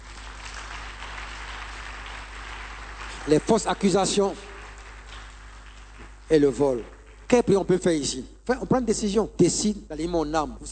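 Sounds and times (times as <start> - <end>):
church congregation applauding during a service: 0.0 - 7.5
speech: 3.2 - 4.5, 6.3 - 10.7.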